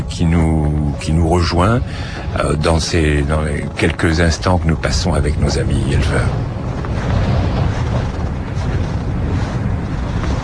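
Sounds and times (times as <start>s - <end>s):
strong wind blowing on microphone: 0.0s - 10.4s
speech: 0.1s - 7.2s.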